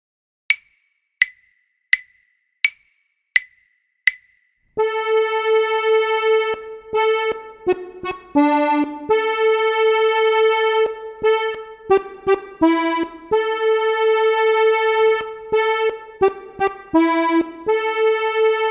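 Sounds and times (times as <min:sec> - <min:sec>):
harmonika duo playing: 0:04.8 - 0:18.7.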